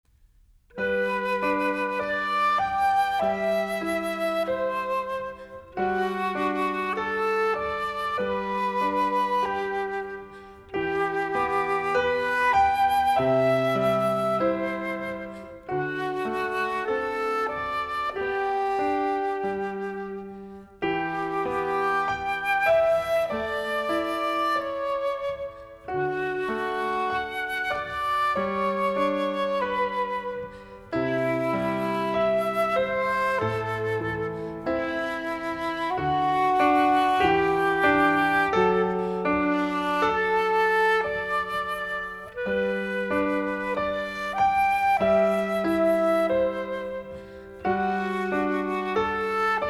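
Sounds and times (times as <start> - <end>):
prelude music: 0.1 - 49.6.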